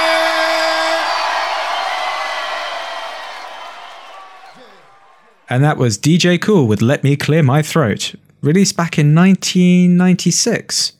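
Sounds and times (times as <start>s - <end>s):
audience cheering: 0.0s - 5.6s
speech: 5.5s - 10.9s.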